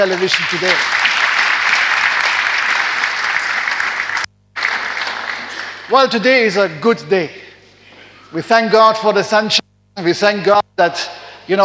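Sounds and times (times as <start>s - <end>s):
speech: 0.0s - 1.1s, 5.9s - 7.4s, 8.3s - 11.6s
audience applause: 0.0s - 6.2s.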